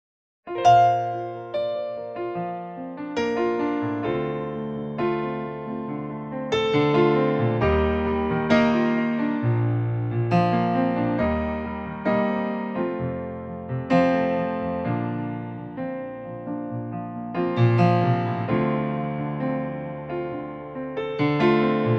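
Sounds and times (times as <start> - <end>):
piano backing track for female singer in B-flat major: 0.5 - 21.9.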